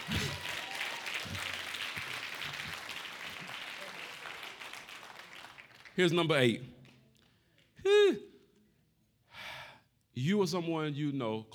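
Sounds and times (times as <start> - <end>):
crowd clapping: 0.0 - 7.1
speech: 6.0 - 6.8, 10.2 - 11.5.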